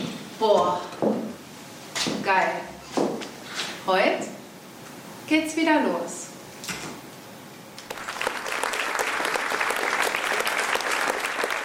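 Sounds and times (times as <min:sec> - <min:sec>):
speech: 0:00.4 - 0:01.2, 0:02.3 - 0:02.8, 0:03.9 - 0:04.4, 0:05.3 - 0:06.2
theatre audience applause: 0:07.8 - 0:11.6.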